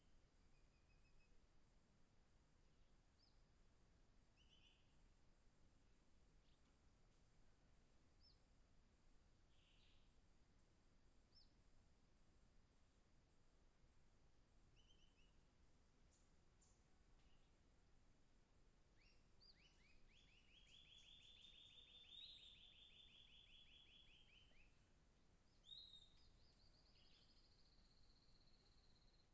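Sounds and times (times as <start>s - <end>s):
cricket chirping in dense forest in late afternoon: 0.0s - 29.3s
bird singing in dense forest in late afternoon: 4.3s - 5.0s, 9.5s - 10.1s, 14.8s - 15.4s, 16.1s - 17.6s, 18.9s - 24.8s, 25.5s - 29.3s.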